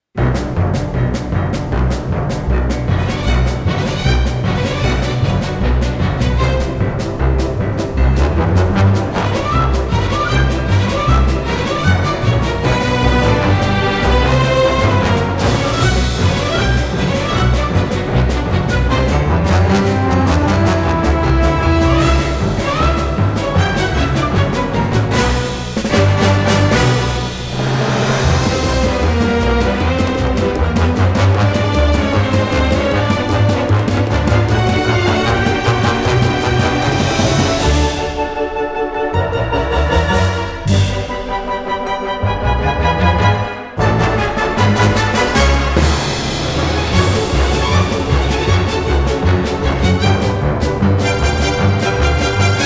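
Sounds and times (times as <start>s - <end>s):
trailer music without choir: 0.1s - 52.6s.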